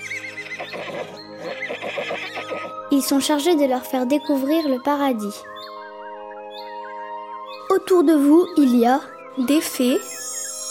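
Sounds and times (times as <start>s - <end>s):
miniature horse whinnying: 0.0s - 2.7s
speech: 2.9s - 5.5s, 7.9s - 10.1s.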